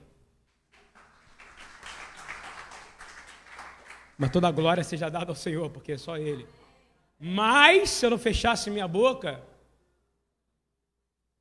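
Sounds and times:
audience applause: 0:00.7 - 0:04.6
speech: 0:04.2 - 0:06.6, 0:07.2 - 0:09.5.

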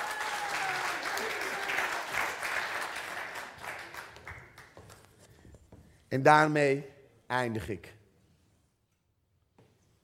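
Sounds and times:
audience applause: 0:00.0 - 0:04.8
speech: 0:06.1 - 0:08.0.

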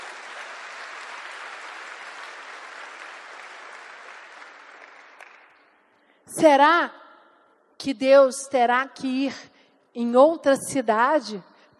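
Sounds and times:
audience applause: 0:00.0 - 0:05.6
speech: 0:06.3 - 0:07.0, 0:07.8 - 0:11.7.

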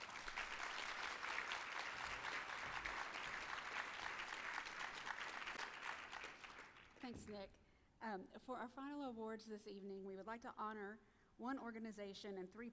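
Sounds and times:
audience applause welcoming a presenter at a history awards ceremony: 0:00.0 - 0:06.9
speech: 0:07.1 - 0:12.7.

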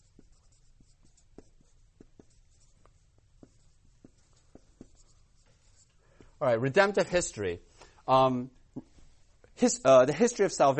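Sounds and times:
word being written down by hand: 0:00.0 - 0:06.4
speech: 0:06.4 - 0:08.9, 0:09.6 - 0:10.7.

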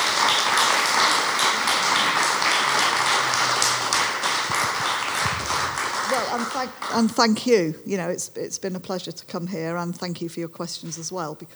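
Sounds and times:
audience round of applause: 0:00.0 - 0:07.8
laughter: 0:00.0 - 0:11.5
speech: 0:06.3 - 0:11.5.

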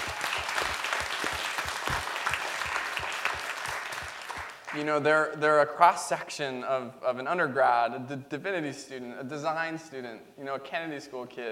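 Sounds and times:
audience applause: 0:00.0 - 0:04.8
speech: 0:04.7 - 0:11.5.

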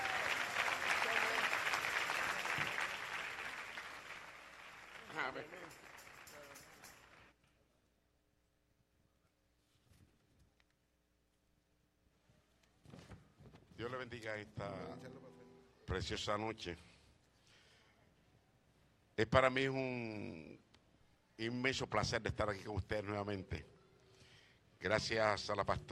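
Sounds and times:
audience applause: 0:00.0 - 0:07.3
speech: 0:05.3 - 0:05.9, 0:14.0 - 0:15.3, 0:15.9 - 0:16.9, 0:19.2 - 0:20.7, 0:21.4 - 0:23.7, 0:24.8 - 0:25.8.

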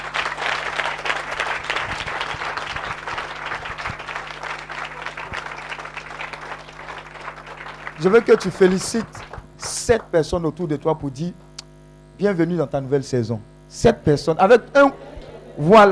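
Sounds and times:
church congregation clapping: 0:00.0 - 0:10.3
speech: 0:08.0 - 0:11.4, 0:12.2 - 0:15.9
laughter: 0:14.8 - 0:15.9.

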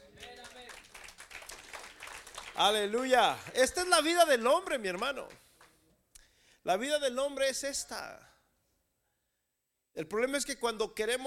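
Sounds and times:
audience applause: 0:00.0 - 0:02.9
speech: 0:02.6 - 0:05.4, 0:06.6 - 0:08.3, 0:10.0 - 0:11.2.

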